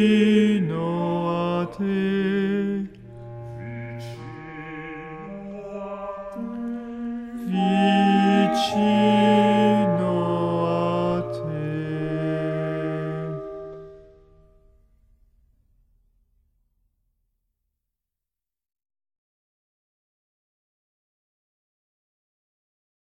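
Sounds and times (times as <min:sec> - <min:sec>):
soprano singing: 0:00.0 - 0:14.3.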